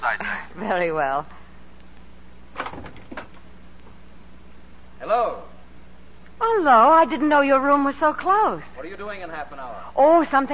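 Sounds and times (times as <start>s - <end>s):
speech: 0.6s - 1.4s, 5.0s - 5.5s, 6.4s - 10.5s
window rattling open: 2.5s - 3.4s.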